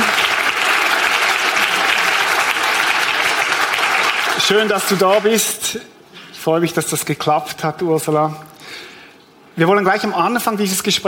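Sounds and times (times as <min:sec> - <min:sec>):
audience applause: 0:00.0 - 0:05.4
speech: 0:04.5 - 0:08.9, 0:09.6 - 0:11.0.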